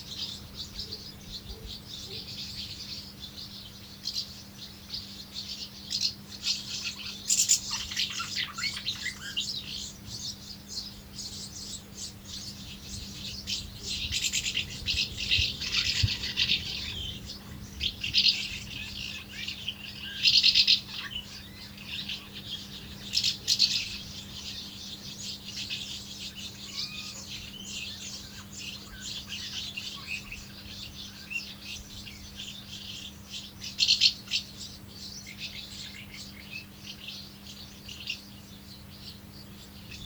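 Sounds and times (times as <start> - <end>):
house martins twittering: 0.0 - 40.0.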